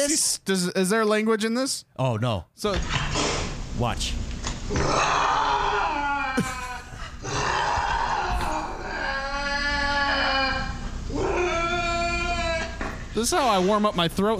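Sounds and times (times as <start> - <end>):
speech: 0.1 - 3.2, 3.8 - 5.3, 13.2 - 14.3
lynx screaming in a kitchen: 4.7 - 12.9.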